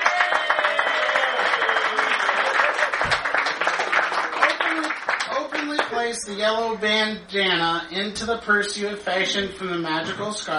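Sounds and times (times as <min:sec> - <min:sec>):
audience applause: 0:00.0 - 0:05.9
speech: 0:06.1 - 0:10.5.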